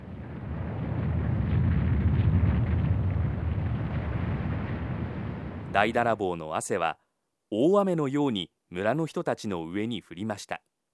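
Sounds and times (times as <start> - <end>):
earthquake rumbling: 0.0 - 6.6
speech: 5.8 - 10.7.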